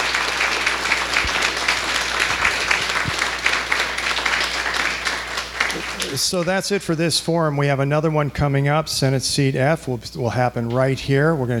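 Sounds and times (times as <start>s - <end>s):
audience applause: 0.0s - 6.6s
speech: 6.2s - 11.5s.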